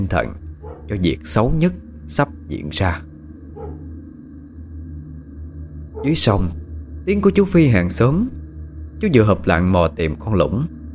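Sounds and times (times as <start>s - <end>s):
speech: 0.0s - 3.1s, 6.0s - 8.4s, 9.0s - 10.8s
steady low droning hum: 0.0s - 10.9s
dog bark: 0.6s - 0.9s, 3.6s - 3.8s.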